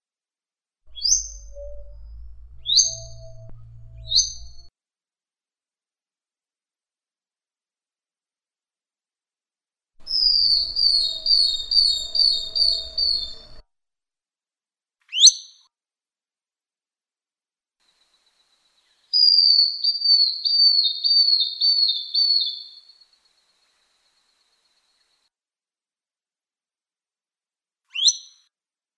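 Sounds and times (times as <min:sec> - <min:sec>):
bird singing one long high pure whistle: 0:00.9 - 0:04.7, 0:10.0 - 0:13.6, 0:19.2 - 0:22.8.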